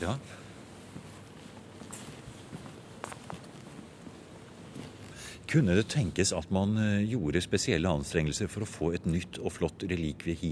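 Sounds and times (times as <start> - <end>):
speech: 0.0 - 0.4, 5.5 - 10.5
faint footsteps walking through Nidaros Cathedral: 0.0 - 6.2
low steady hush: 0.0 - 10.5.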